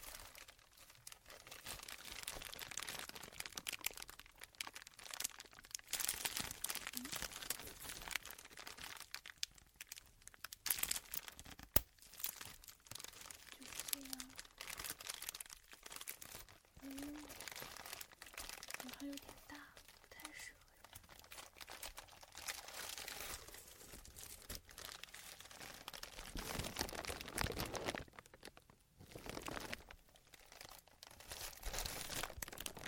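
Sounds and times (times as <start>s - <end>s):
large bubble wrap being squeezed, crinkling and popping: 0.0s - 32.8s.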